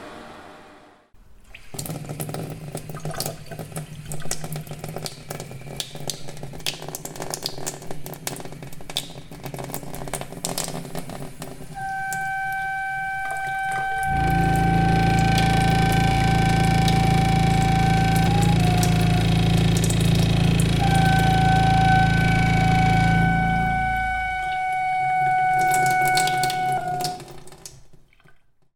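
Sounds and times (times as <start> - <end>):
soundscape: 11.8 - 27.2.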